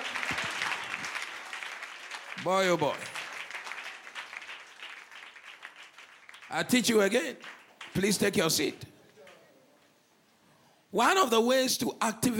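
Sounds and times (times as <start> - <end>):
audience clapping: 0.0 - 9.6
speech: 2.4 - 3.2, 6.5 - 8.9, 10.9 - 12.3.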